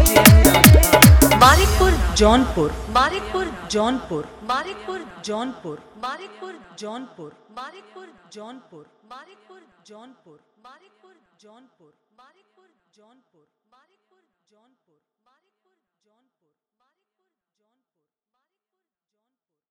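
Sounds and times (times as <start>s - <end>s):
Bhojpuri dholak bass dance remix: 0.0s - 3.4s.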